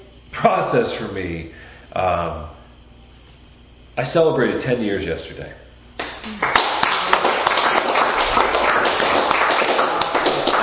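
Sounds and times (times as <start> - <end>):
speech: 0.4 - 2.6, 4.0 - 5.6, 6.2 - 6.7
audience applause: 6.4 - 10.6.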